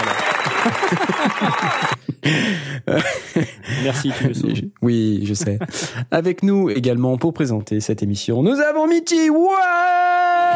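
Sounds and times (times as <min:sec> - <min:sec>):
applause: 0:00.0 - 0:02.0
laughter: 0:00.0 - 0:06.1
speech: 0:02.3 - 0:10.5.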